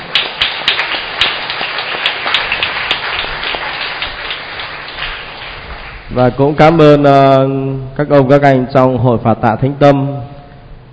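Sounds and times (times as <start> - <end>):
loud round of applause: 0.0 - 6.6
speech: 6.2 - 10.3.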